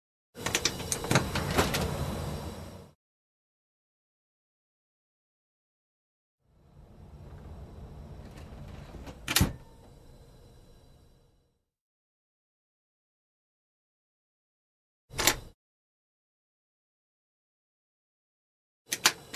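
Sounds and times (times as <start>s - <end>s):
train car doors: 0.4s - 2.9s, 6.6s - 11.3s, 15.1s - 15.5s.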